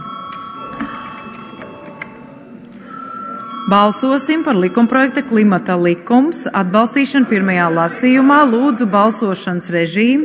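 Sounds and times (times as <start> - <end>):
parliamentary chamber bell ringing: 0.0 - 6.5
speech: 3.7 - 10.2.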